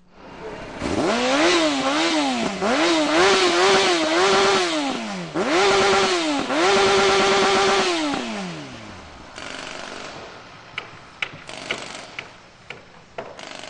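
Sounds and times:
traffic noise: 0.0s - 13.6s
sport motorcycle engine revving at Calhoun Parkway and Xerxes Avenue South: 0.3s - 11.0s.

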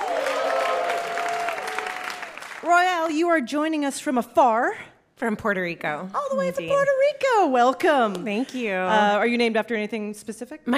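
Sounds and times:
audience applause welcoming game show contestants: 0.0s - 2.7s
speech: 2.6s - 10.7s.

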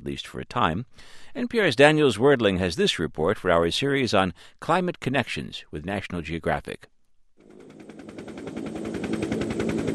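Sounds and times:
speech: 0.0s - 6.9s
helicopter taking off from a research base in Antarctica: 7.4s - 9.9s.

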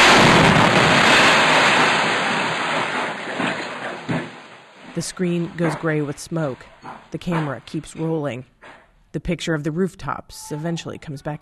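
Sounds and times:
rocket hitting a house during a government offensive: 0.0s - 4.6s
speech: 5.0s - 11.4s.

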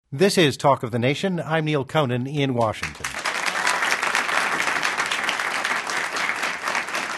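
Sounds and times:
speech: 0.1s - 3.2s
studio audience applauding in Washington: 2.8s - 7.1s.

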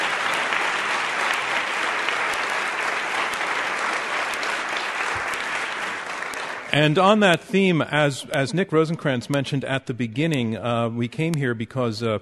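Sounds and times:
round of applause: 0.0s - 7.2s
speech: 6.8s - 12.2s.

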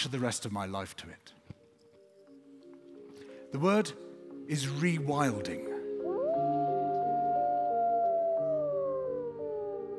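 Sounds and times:
speech: 0.0s - 1.4s, 3.5s - 5.7s
gray wolves howling together: 6.0s - 9.9s.

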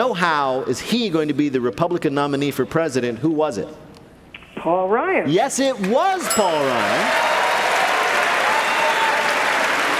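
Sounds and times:
speech: 0.0s - 3.9s, 4.6s - 7.3s
audience applause: 6.6s - 9.9s.

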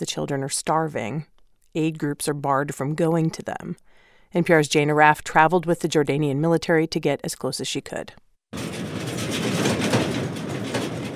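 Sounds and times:
speech: 0.0s - 8.2s
flatbed truck rattling and squeaking in desert: 8.6s - 11.1s.

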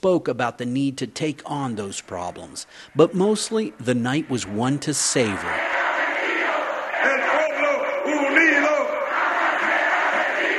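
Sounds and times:
speech: 0.0s - 5.9s
crowd of supporters chanting a cheer: 4.1s - 10.5s.

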